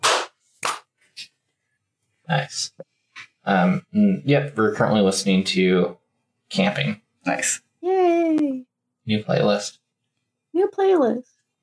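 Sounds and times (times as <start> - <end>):
group clapping together on a count: 0.0 - 0.9
speech: 2.3 - 9.8, 10.6 - 11.3.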